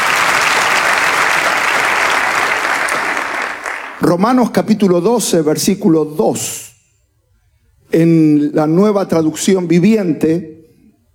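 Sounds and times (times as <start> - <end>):
audience applause: 0.0 - 4.0
speech: 4.1 - 6.7, 7.9 - 10.6.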